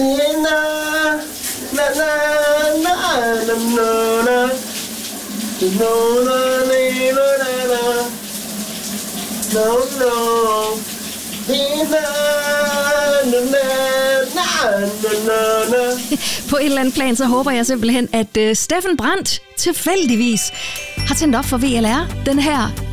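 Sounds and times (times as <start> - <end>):
man singing a wordless melody: 0.0 - 4.6, 5.6 - 8.2, 9.5 - 10.8, 11.5 - 16.2
shower running: 0.0 - 22.7
speech: 3.2 - 4.7, 5.6 - 8.2, 13.2 - 22.8.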